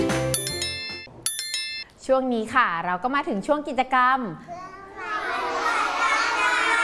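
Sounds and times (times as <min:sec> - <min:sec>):
speech: 0:02.1 - 0:04.7
children shouting loudly: 0:04.8 - 0:06.8.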